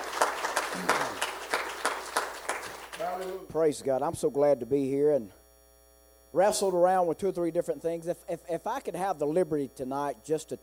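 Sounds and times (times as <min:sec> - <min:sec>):
congregation hand clap of praise in a church service: 0:00.0 - 0:03.4
room noise hum: 0:00.0 - 0:10.6
speech: 0:03.5 - 0:05.4, 0:06.3 - 0:10.6.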